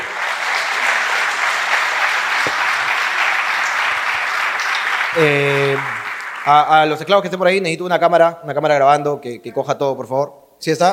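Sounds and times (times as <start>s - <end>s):
loud crowd applause: 0.0s - 7.1s
speech: 5.2s - 10.9s.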